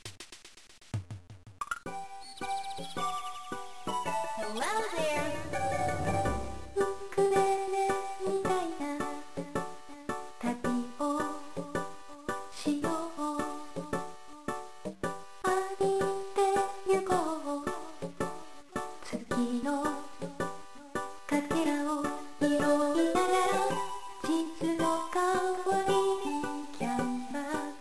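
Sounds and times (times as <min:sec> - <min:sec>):
karaoke backing music: 0:03.7 - 0:27.8.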